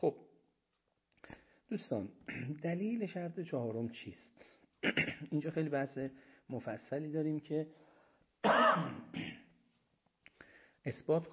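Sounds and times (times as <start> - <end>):
speech: 0.0 - 0.2, 1.7 - 9.4, 10.8 - 11.3
person coughing while giving a lecture: 2.3 - 2.6, 4.8 - 5.5, 8.4 - 9.5.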